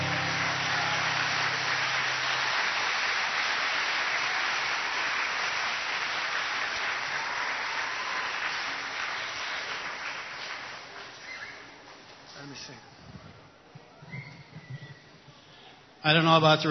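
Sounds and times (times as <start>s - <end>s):
crowd applause: 0.0s - 11.2s
speech: 12.6s - 13.0s, 16.0s - 16.6s.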